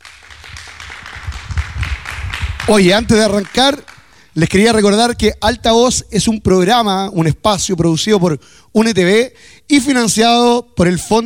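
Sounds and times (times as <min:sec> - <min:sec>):
audience applause: 0:00.0 - 0:04.2
speech: 0:02.7 - 0:11.2.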